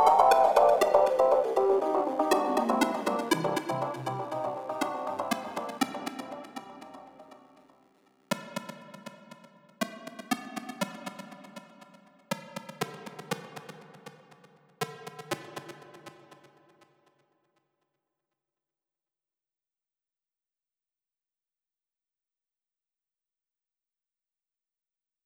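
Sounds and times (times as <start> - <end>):
synthesizers: 0.0 - 7.7.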